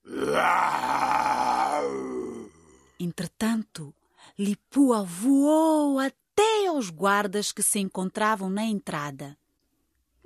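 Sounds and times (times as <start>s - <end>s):
lion roaring: 0.1s - 2.8s
speech: 4.4s - 6.2s, 6.8s - 9.4s.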